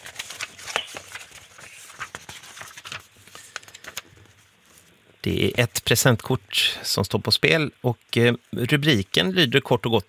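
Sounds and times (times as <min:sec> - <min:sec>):
paper cards being thumbed through: 0:00.0 - 0:04.9
speech: 0:05.2 - 0:10.0.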